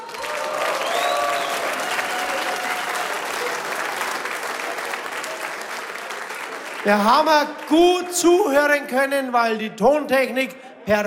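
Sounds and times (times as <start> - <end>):
audience applause: 0.0 - 7.8
speech: 6.8 - 11.0.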